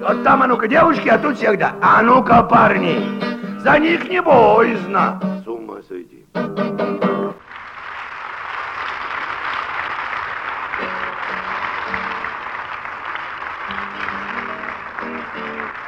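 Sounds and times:
speech: 0:00.0 - 0:06.6
audience applause: 0:07.4 - 0:15.8.

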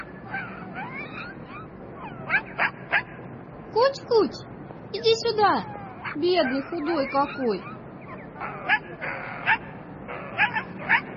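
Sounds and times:
dog whimpering: 0:00.0 - 0:03.0, 0:05.6 - 0:11.1
dog barking: 0:00.0 - 0:03.2, 0:05.9 - 0:09.7, 0:10.3 - 0:11.1
speech: 0:05.4 - 0:07.7.

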